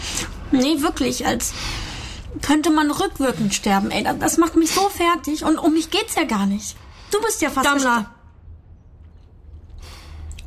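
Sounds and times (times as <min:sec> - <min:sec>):
low steady hum: 0:00.0 - 0:10.4
speech: 0:00.5 - 0:08.2
lip smacking while eating: 0:09.0 - 0:10.4.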